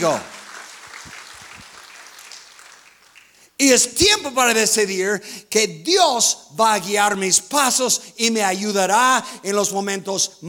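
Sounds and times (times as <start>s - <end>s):
speech: 0.0s - 0.3s, 3.6s - 10.4s
congregation clapping at an evening Spanish-language church service: 0.0s - 3.6s.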